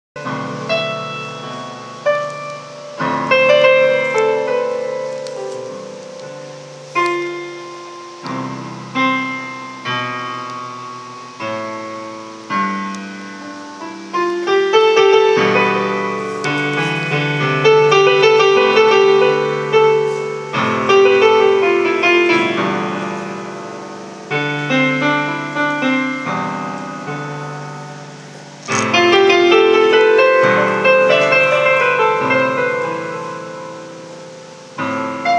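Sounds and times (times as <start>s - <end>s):
piano: 0.2s - 35.3s.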